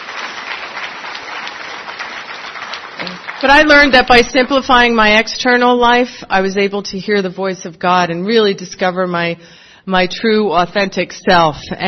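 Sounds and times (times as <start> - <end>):
audience applause: 0.0 - 4.5
speech: 3.4 - 11.8.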